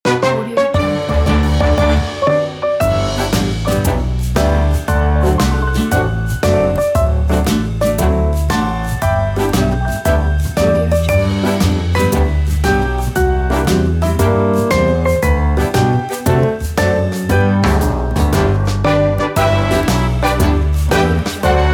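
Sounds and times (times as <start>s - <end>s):
birthday song on piano: 0.1s - 21.7s.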